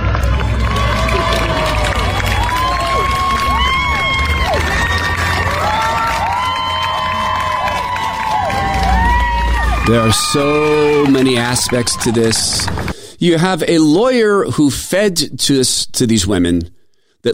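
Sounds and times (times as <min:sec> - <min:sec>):
crowd cheering and shouting: 0:00.0 - 0:12.9
speech: 0:09.9 - 0:17.3.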